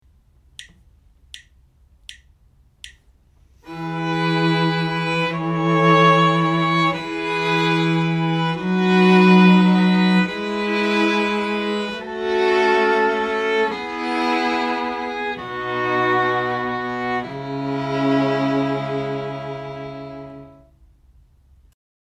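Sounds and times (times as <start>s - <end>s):
string quartet playing: 3.6s - 20.7s.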